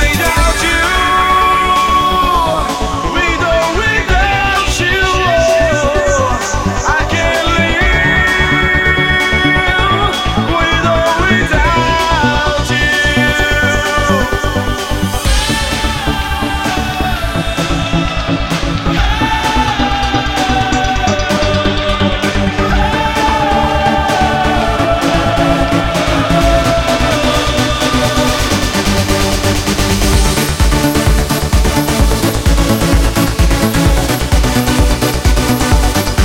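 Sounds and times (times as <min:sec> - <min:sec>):
vocal trance music: 0:00.0 - 0:36.2.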